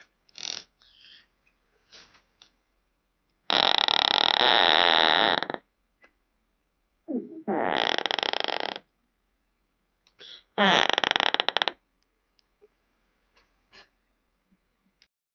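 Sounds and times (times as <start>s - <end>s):
bed creaking: 3.5s - 5.7s, 7.2s - 8.9s, 10.6s - 11.8s.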